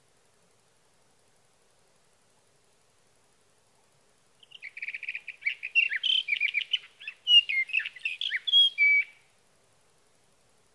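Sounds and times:
sage thrasher song: 0:04.4 - 0:09.2.

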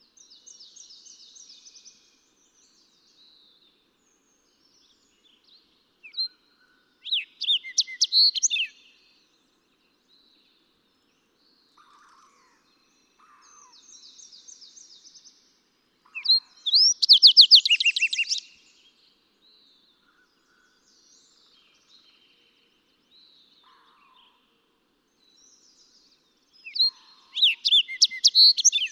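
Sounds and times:
fox sparrow calling: 0:16.0 - 0:18.5, 0:26.6 - 0:28.8.

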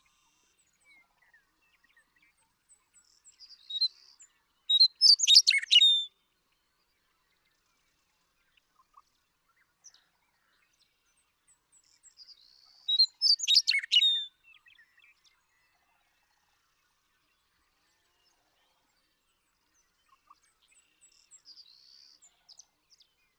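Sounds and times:
Western meadowlark singing: 0:04.7 - 0:06.1, 0:12.3 - 0:14.3.

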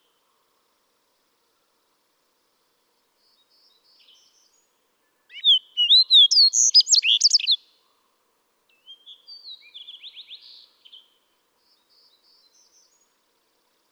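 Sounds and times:
Fox Sparrow song: 0:03.2 - 0:08.0, 0:08.7 - 0:13.2.

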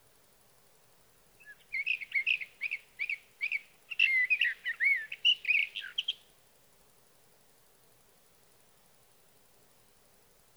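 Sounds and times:
Sage thrasher singing warbled song: 0:01.4 - 0:06.2.

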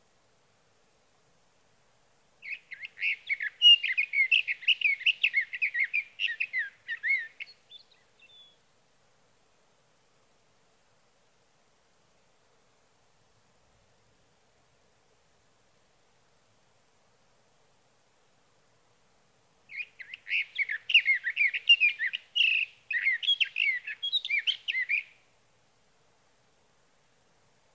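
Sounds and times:
Sage thrasher singing through the night: 0:02.4 - 0:08.6, 0:19.7 - 0:25.2.

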